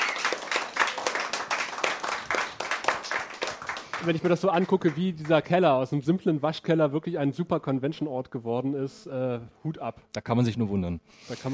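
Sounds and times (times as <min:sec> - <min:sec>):
audience applause: 0:00.0 - 0:05.5
speech: 0:04.0 - 0:11.5.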